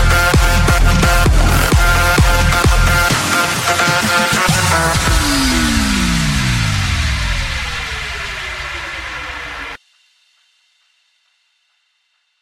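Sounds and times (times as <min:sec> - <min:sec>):
130 BPM future bounce trance: 0:00.0 - 0:09.8.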